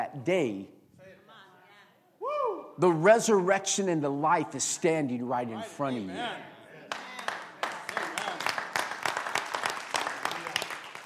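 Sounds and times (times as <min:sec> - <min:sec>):
speech: 0:00.1 - 0:00.8, 0:02.8 - 0:06.5
crowd clapping: 0:06.9 - 0:11.0.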